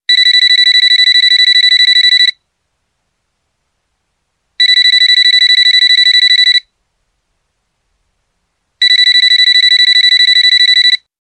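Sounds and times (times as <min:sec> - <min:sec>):
radiotelephone: 0:00.1 - 0:02.5, 0:04.6 - 0:06.8, 0:08.8 - 0:11.1.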